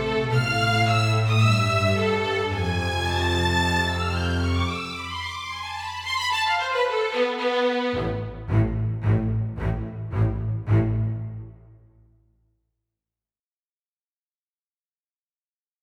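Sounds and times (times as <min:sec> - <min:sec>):
symphony strings: 0:00.0 - 0:11.9.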